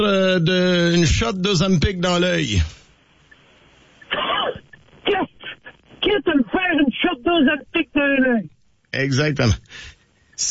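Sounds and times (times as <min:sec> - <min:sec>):
speech: 0:00.0 - 0:02.8, 0:06.1 - 0:10.4
person coughing and choking: 0:04.1 - 0:05.6.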